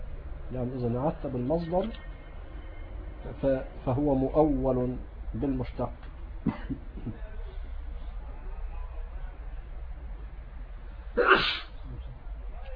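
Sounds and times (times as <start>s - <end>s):
hum: 0.0s - 12.7s
speech: 0.5s - 2.1s, 3.2s - 7.3s
sneeze during an Arabic grammar lesson: 11.2s - 11.8s.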